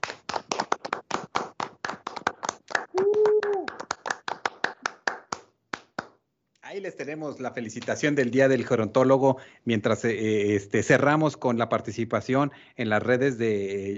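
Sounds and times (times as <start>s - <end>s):
small group clapping for gerontologists: 0.0s - 6.3s
person calling out: 2.9s - 3.8s
speech: 6.8s - 13.9s.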